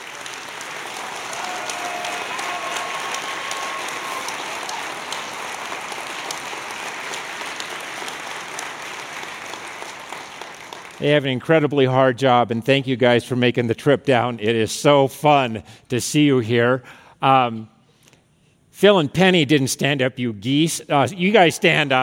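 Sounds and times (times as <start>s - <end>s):
audience applause welcoming young airmen from F.E. Warren: 0.0s - 11.0s
speech: 11.0s - 17.7s, 18.8s - 22.0s.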